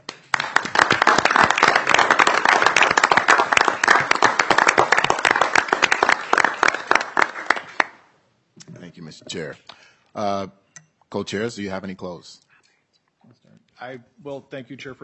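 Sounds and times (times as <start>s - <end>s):
round of applause for retiring members: 0.0s - 8.1s
speech: 9.3s - 12.5s, 13.8s - 15.0s.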